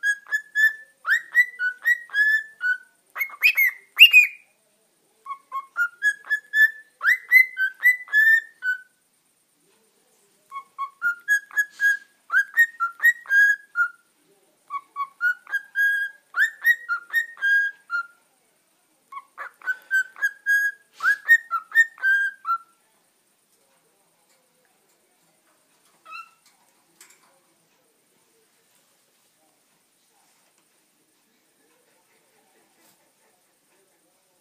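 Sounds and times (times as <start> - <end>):
Dutch canary singing: 0.0 - 4.5, 5.2 - 8.9, 10.5 - 14.0, 14.7 - 18.2, 19.1 - 22.7, 26.0 - 26.5.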